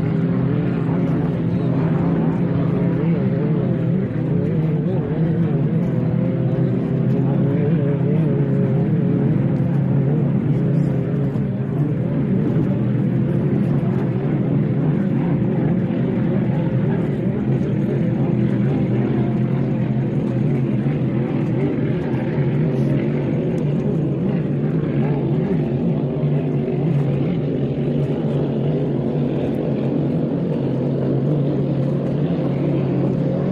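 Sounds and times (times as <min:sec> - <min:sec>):
motorboats racing: 0:00.0 - 0:33.5.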